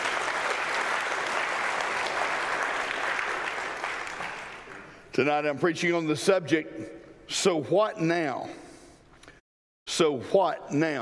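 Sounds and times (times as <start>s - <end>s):
audience applause: 0.0s - 4.9s
speech: 5.2s - 8.6s, 10.0s - 10.9s.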